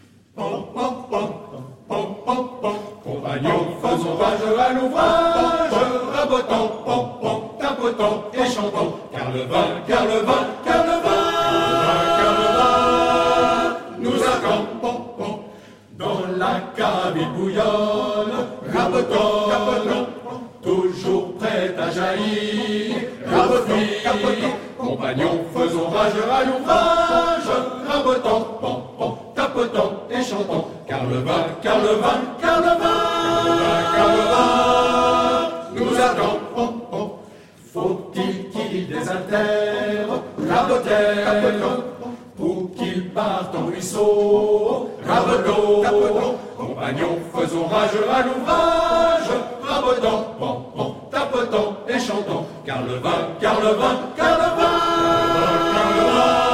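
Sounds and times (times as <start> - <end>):
coopers' work song: 0.0 - 56.5.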